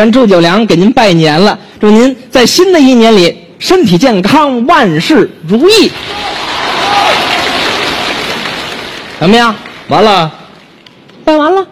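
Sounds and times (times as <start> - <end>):
speech: 0.0 - 6.5, 9.2 - 10.4, 11.2 - 11.7
audience clapping at a New Year crosstalk comedy performance: 5.9 - 11.2.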